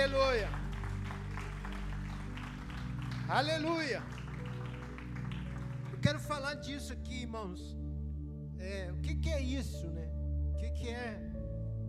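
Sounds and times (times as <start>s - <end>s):
audience applauding: 0.0s - 6.4s
speech: 3.3s - 4.2s, 6.0s - 7.8s, 8.6s - 11.3s.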